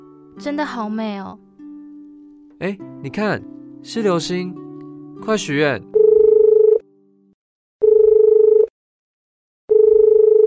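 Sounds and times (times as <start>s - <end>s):
speech: 0.4s - 1.5s, 2.6s - 4.6s, 5.2s - 6.0s
telephone ringing: 6.0s - 6.8s, 7.8s - 8.7s, 9.7s - 10.4s.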